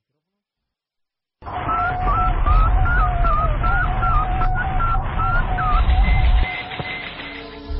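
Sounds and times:
Sputnik 2 satellite radio signal: 1.4s - 7.7s.

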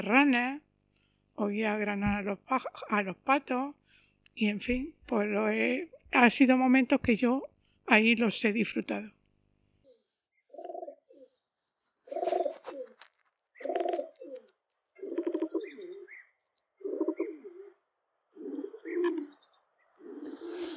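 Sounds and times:
speech: 0.0s - 0.6s, 1.4s - 3.8s, 4.4s - 9.2s
faint higher chirps and tweets: 9.8s - 20.7s
pigeons cooing: 9.9s - 11.3s, 12.1s - 20.7s.

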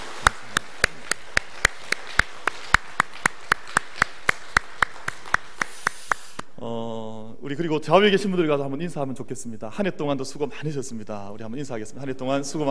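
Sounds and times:
audience applause: 0.0s - 6.4s
speech: 7.5s - 12.7s.

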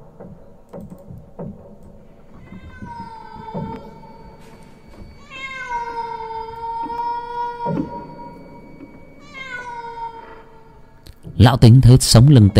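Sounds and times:
cat meowing eerily at night: 2.4s - 4.4s, 5.2s - 8.3s, 9.2s - 10.8s
speech: 11.4s - 12.5s.

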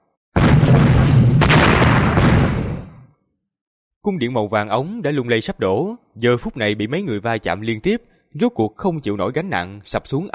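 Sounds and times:
loud explosion boom with shockwave: 0.4s - 3.1s
speech: 4.0s - 10.3s.

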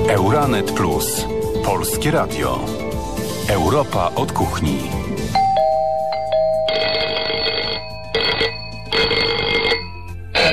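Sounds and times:
speech: 0.2s - 2.9s, 3.5s - 5.0s
bell ringing: 5.4s - 10.5s.

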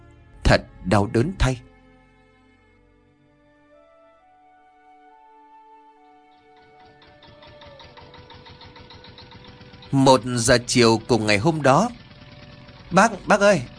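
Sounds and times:
speech: 0.5s - 1.7s, 9.9s - 12.0s, 12.9s - 13.7s
old Vietnamese công nông farm tractor-truck engine chugging: 6.3s - 13.7s.

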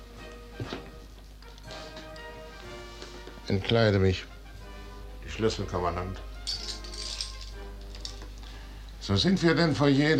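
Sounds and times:
speech: 3.5s - 4.3s, 5.4s - 6.3s, 9.1s - 10.1s
gold chain snapping and falling: 6.5s - 8.3s.

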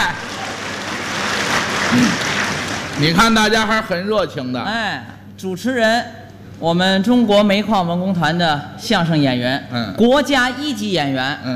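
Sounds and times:
sparse applause from the audience at a live crosstalk comedy show: 0.0s - 3.7s
speech: 2.0s - 2.2s, 3.0s - 11.5s.

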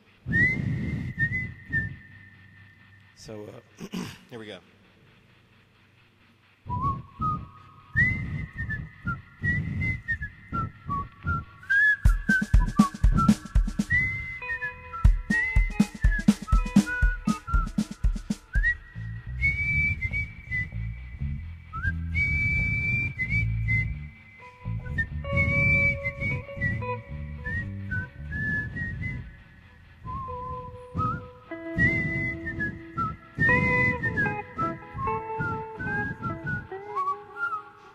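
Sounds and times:
whistled theme song melody: 0.2s - 3.0s, 6.7s - 37.9s
speech: 3.2s - 4.8s
steady percussive beats: 12.0s - 13.9s, 15.0s - 18.8s.

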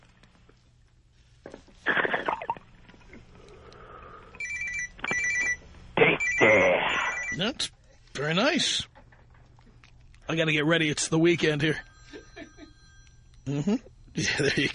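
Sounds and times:
phone alarm ringing like a telephone: 4.4s - 5.6s, 6.2s - 7.5s, 11.4s - 13.5s
speech: 7.4s - 8.9s, 10.3s - 11.9s, 13.6s - 14.7s.

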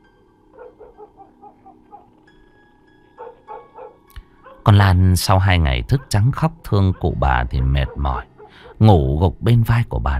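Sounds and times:
dog barking in the distance at night: 0.5s - 2.2s, 3.1s - 4.7s, 5.8s - 8.8s
speech: 4.7s - 10.1s.

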